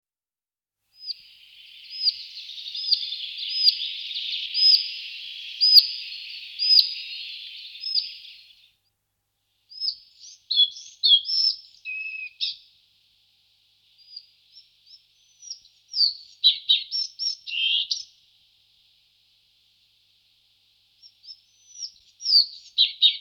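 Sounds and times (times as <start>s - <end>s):
Collared flycatcher Ficedula albicollis singing high squeaky whistled notes: 0.9s - 8.7s, 9.7s - 12.7s, 13.9s - 18.2s, 21.0s - 23.1s.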